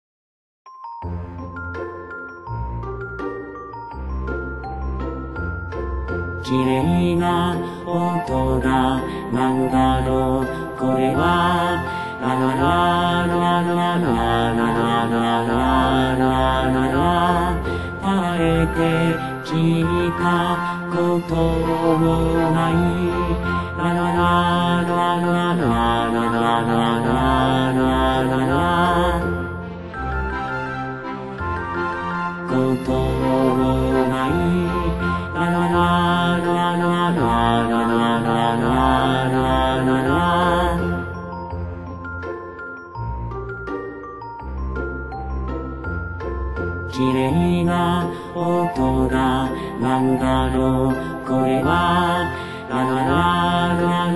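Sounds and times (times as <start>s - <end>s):
bass: 1.1s - 54.1s.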